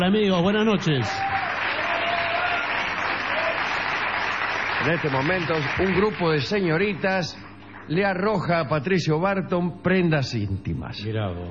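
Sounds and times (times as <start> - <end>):
speech: 0.0 - 1.3, 4.8 - 11.5
crowd ovation applause: 1.0 - 7.1.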